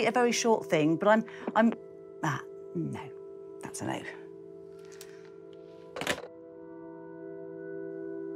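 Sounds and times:
speech: 0.0 - 4.2
telephone receiver being put down: 6.0 - 6.3.

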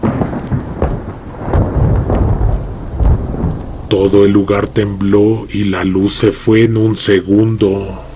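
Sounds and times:
loud deep rolling thunder: 0.0 - 6.4
heavy rain: 0.0 - 8.1
speech: 3.9 - 8.1.

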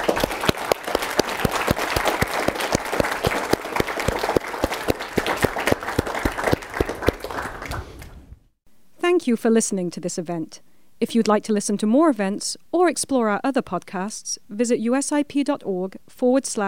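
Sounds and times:
crowd applauding: 0.0 - 8.3
speech: 9.2 - 16.6.

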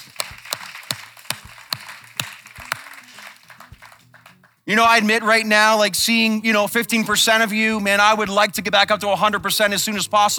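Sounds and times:
audience clapping: 0.0 - 5.5
speech: 4.7 - 10.3.

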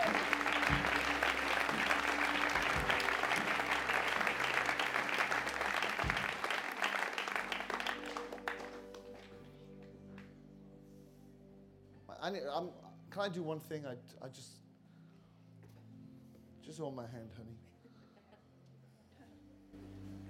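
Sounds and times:
crowd applause: 0.0 - 9.5
speech: 12.3 - 14.6, 16.7 - 17.7.

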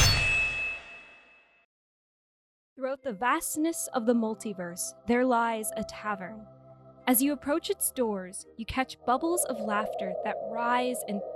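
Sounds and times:
sword swing clang: 0.0 - 1.4
speech: 2.8 - 11.3.

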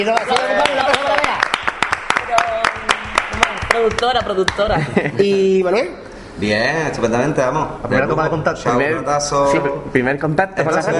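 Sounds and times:
speech: 0.0 - 1.0, 3.8 - 10.9
applause from a small group: 0.0 - 4.7.

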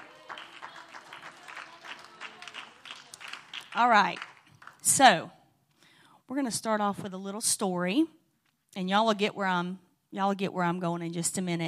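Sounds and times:
audience clapping: 0.0 - 5.0
speech: 3.8 - 5.4, 6.3 - 11.6.

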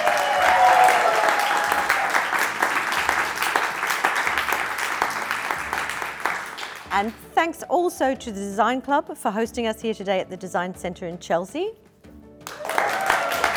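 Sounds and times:
audience applause: 0.0 - 7.2, 12.5 - 13.5
speech: 7.0 - 11.8.

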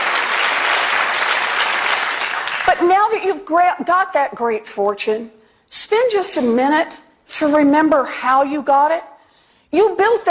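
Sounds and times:
audience applauding during a political speech: 0.0 - 2.9
speech: 2.7 - 9.1, 9.7 - 10.2.

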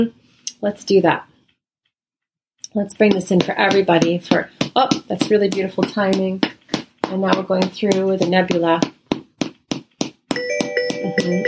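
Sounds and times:
speech: 0.0 - 1.3, 2.7 - 9.0, 11.2 - 11.4
phone alert for incoming spam call: 10.3 - 11.4.

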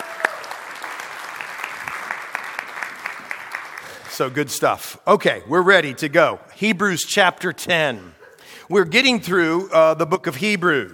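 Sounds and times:
audience clapping: 0.0 - 4.4
speech: 4.2 - 10.9.

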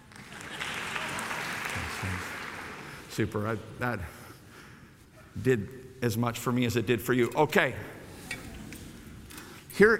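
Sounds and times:
audience clapping: 0.0 - 3.1
speech: 3.2 - 4.2, 5.4 - 8.0, 9.8 - 9.9.

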